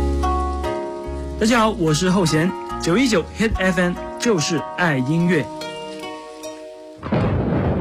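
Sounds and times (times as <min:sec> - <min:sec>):
heavy rain: 0:00.0 - 0:07.7
speech: 0:01.4 - 0:05.6
thunder rumbling: 0:07.0 - 0:07.7.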